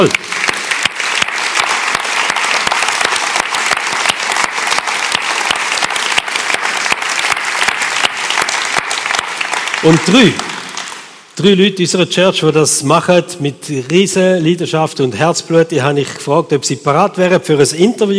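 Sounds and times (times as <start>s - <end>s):
speech: 0.0s - 0.2s, 9.8s - 10.5s, 11.4s - 18.1s
big round of applause: 0.0s - 11.2s.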